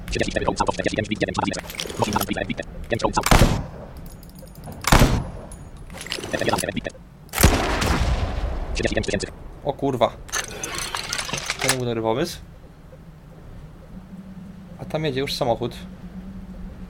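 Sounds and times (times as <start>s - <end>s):
speech: 0.1s - 3.7s, 6.3s - 7.0s, 8.8s - 10.3s, 11.3s - 12.5s, 14.8s - 16.0s
gunfire: 3.2s - 3.9s, 4.8s - 5.5s, 7.4s - 9.1s
shell casings bouncing off wall: 3.9s - 6.6s, 10.3s - 11.9s.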